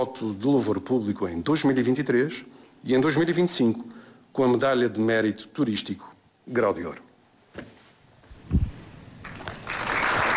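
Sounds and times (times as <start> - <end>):
speech: 0.0 - 7.0
audience applause: 9.2 - 10.3.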